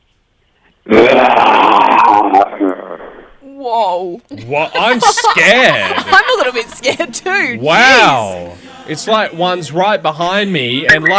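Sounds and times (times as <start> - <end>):
person imitating a lion roar: 0.9 - 3.1
speech: 3.7 - 11.1
laughter: 4.4 - 7.2.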